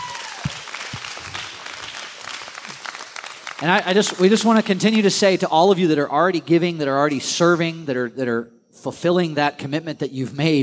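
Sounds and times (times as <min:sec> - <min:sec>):
audience clapping: 0:00.0 - 0:04.8
speech: 0:03.6 - 0:10.6.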